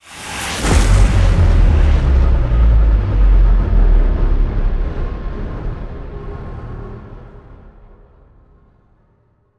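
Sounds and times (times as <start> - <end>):
modulated stinger: 0.1 - 7.2.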